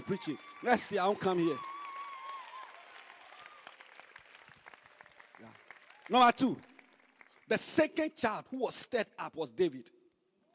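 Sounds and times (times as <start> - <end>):
audience clapping: 0.0 - 7.9
speech: 0.1 - 1.8, 6.1 - 6.7, 7.5 - 10.0.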